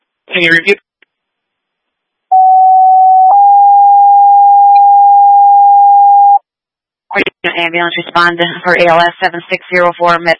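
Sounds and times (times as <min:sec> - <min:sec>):
speech: 0:00.4 - 0:00.9, 0:07.2 - 0:10.3
dispatch radio paging tone: 0:02.3 - 0:06.4.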